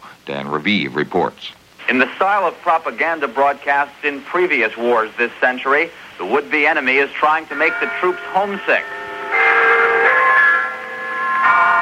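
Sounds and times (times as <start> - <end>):
speech: 0.2 - 9.0
Big Ben chimes of London's clock tower: 6.6 - 11.8.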